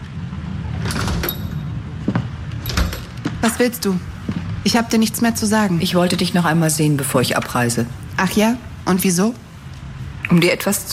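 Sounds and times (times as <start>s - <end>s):
door opening as someone enters: 0.7s - 3.5s
speech: 3.4s - 9.4s, 10.3s - 10.9s.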